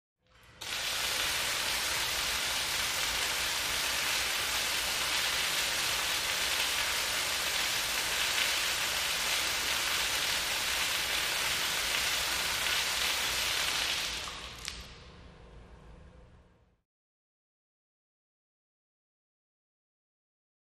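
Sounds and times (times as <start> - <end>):
institutional shower running: 0.3 - 15.0.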